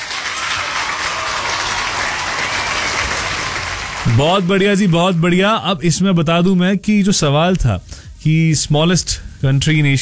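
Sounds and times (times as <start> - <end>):
applause: 0.0 - 5.6
speech: 4.2 - 10.0.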